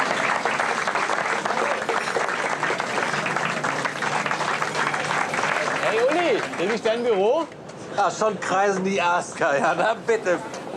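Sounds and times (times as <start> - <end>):
applause: 0.0 - 7.4
speech: 6.6 - 10.6.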